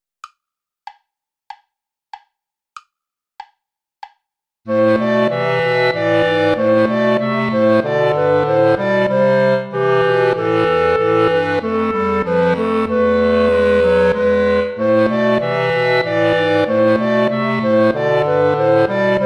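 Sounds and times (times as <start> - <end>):
play-along backing music without clarinet: 4.7 - 19.2.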